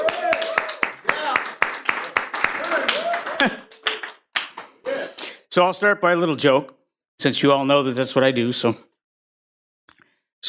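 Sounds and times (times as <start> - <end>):
audience applause: 0.0 - 4.8
speech: 3.4 - 3.6, 5.6 - 8.9.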